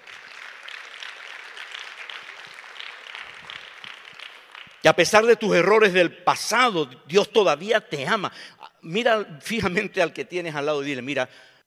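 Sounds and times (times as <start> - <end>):
audience applause: 0.0 - 4.9
speech: 4.8 - 11.5.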